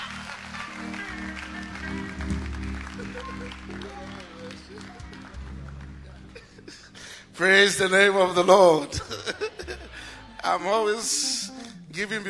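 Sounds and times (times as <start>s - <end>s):
audience clapping: 0.0s - 7.2s
sustained low musical tones: 0.0s - 12.2s
laughter: 2.8s - 7.2s, 8.7s - 10.4s
speech: 7.4s - 9.4s, 10.5s - 11.3s, 12.0s - 12.2s.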